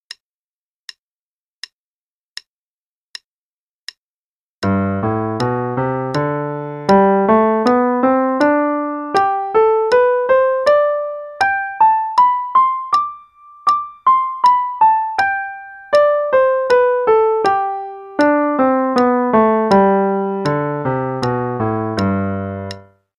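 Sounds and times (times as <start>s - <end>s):
major pentascale study in G: 4.6s - 22.9s.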